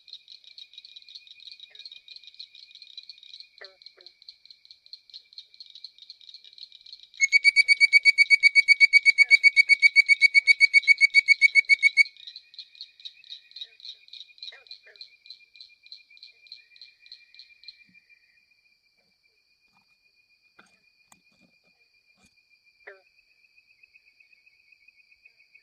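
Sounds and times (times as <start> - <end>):
Hyla avivoca frog bird-like whistling call: 7.2 - 12.2.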